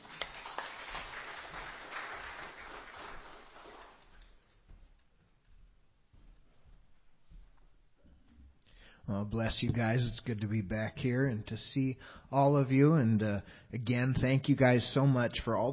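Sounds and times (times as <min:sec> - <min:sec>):
audience applause: 0:00.0 - 0:04.2
speech: 0:09.1 - 0:15.7.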